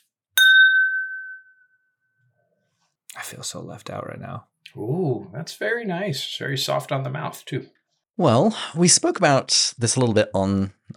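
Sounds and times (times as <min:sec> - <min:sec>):
glasses clinking in a toast: 0:00.4 - 0:01.7
speech: 0:03.2 - 0:10.9.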